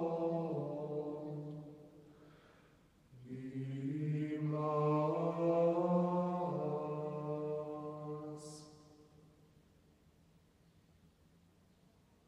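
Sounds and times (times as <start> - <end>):
Gregorian chant: 0.0 - 2.0, 3.1 - 9.1.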